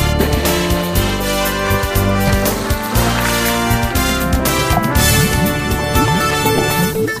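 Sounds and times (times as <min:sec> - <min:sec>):
jingle: 0:00.1 - 0:07.0.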